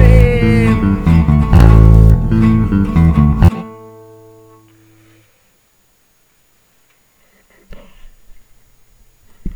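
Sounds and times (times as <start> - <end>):
electric bass: 0.0 - 3.6.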